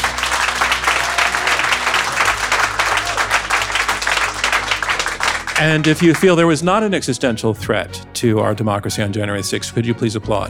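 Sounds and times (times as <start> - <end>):
audience applause: 0.0 - 6.6
speech: 5.6 - 10.4.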